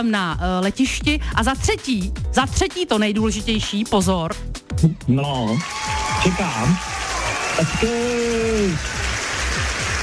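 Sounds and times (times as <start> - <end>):
speech: 0.0 - 6.9, 7.6 - 9.1
applause at a radio station prize announcement: 5.4 - 10.0.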